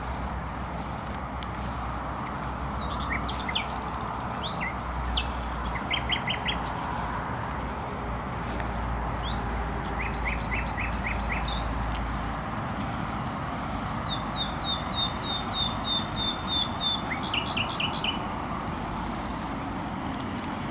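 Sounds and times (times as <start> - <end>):
steady traffic roar: 0.0 - 20.6
nightingale singing: 2.3 - 7.1, 9.1 - 12.2, 13.6 - 19.1.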